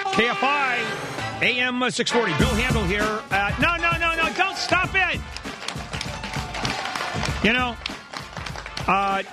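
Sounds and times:
speech: 0.1s - 3.9s, 7.4s - 7.9s, 8.9s - 9.3s
applause in studio: 4.2s - 9.3s.

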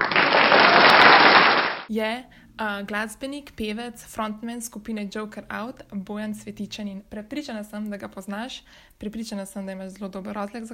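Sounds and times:
applause: 0.0s - 1.9s
speech: 1.9s - 10.7s.

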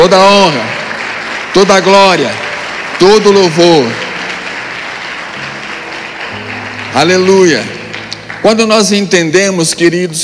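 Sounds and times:
audience applause: 0.0s - 10.2s
speech: 0.1s - 0.8s, 1.5s - 2.4s, 3.0s - 4.0s, 6.9s - 7.8s, 8.4s - 10.2s.

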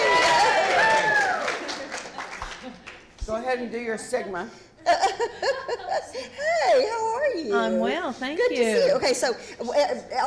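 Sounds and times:
audience applause: 0.0s - 3.0s
speech: 3.5s - 10.2s.

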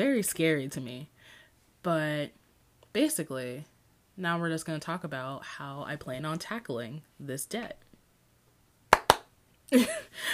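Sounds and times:
speech: 0.0s - 1.1s, 1.8s - 7.8s, 9.7s - 10.3s
two hand claps as segment transition: 8.9s - 9.3s.

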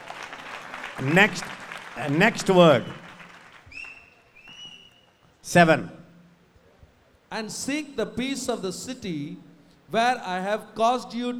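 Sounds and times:
audience clapping: 0.0s - 4.7s
speech: 1.0s - 3.0s, 5.5s - 6.0s, 7.3s - 11.3s
thin sustained high-pitched whistling tones: 3.7s - 5.1s.

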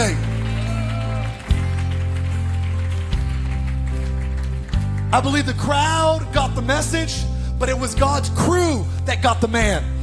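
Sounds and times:
audience clapping hands: 0.0s - 6.0s
speech: 5.1s - 9.9s.

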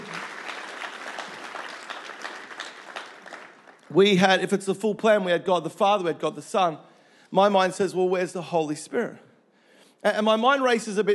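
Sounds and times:
audience applause at a church gathering: 0.0s - 4.2s
speech: 3.9s - 9.3s, 10.0s - 11.1s.

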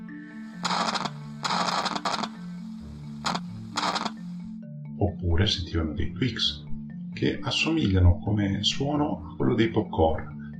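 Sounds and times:
crackling radio static from lightning: 0.6s - 2.4s, 3.2s - 4.2s
speech: 5.2s - 6.6s, 7.2s - 10.4s.

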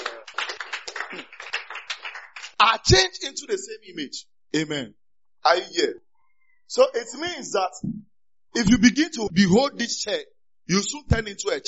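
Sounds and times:
audience clapping: 0.0s - 2.8s
speech: 2.7s - 6.1s, 6.7s - 11.6s.

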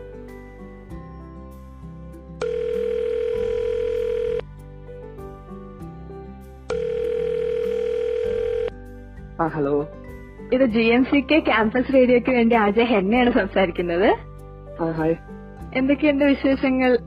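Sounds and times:
music: 0.0s - 17.0s
telephone line tone: 2.4s - 4.5s, 6.7s - 8.8s
speech: 9.4s - 17.0s.

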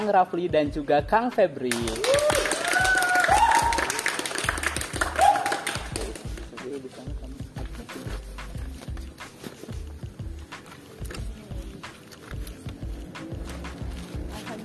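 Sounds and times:
speech: 0.1s - 2.4s
lively applause: 1.7s - 6.5s.

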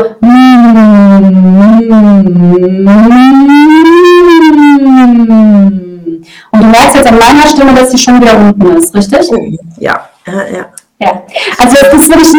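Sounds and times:
speech: 0.0s - 4.0s, 6.6s - 12.3s
person humming a sustained vocal exercise: 0.0s - 6.3s.

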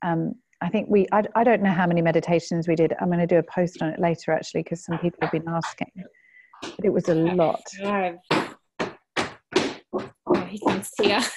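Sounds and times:
speech: 0.0s - 8.4s, 10.0s - 11.3s
heavy thudding foot stomps: 8.3s - 11.2s.

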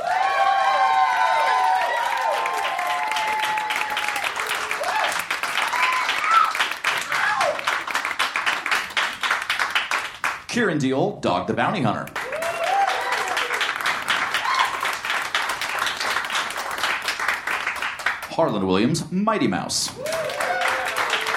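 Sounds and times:
audience cheering: 0.0s - 8.0s, 12.2s - 15.9s, 19.9s - 21.3s
audience applause: 0.0s - 10.5s, 12.1s - 18.3s, 19.9s - 21.3s
speech: 10.6s - 12.2s, 18.4s - 20.5s.

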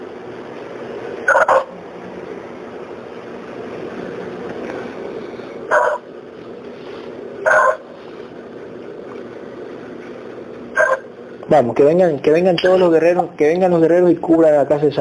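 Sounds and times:
dog barking: 5.7s - 6.0s, 7.5s - 7.8s
speech: 11.5s - 14.9s.

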